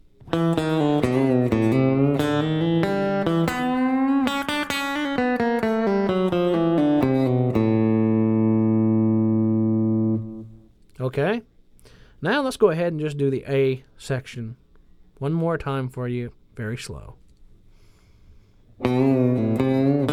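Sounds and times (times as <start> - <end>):
guitar chromatic descent from the third fret to the open D string: 0.2 - 10.7, 18.8 - 20.1
speech: 12.5 - 14.6, 15.2 - 17.2, 18.8 - 19.6.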